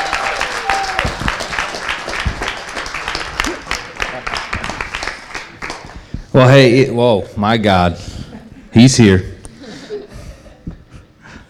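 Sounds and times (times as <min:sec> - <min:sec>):
audience applauding to welcome a preacher: 0:00.0 - 0:06.4
speech: 0:06.4 - 0:08.1, 0:08.7 - 0:09.3
laughter: 0:08.1 - 0:11.2.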